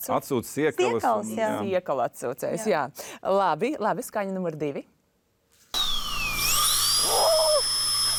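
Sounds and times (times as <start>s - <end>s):
speech: 0.0s - 5.0s
dental drill grinding: 5.8s - 8.1s.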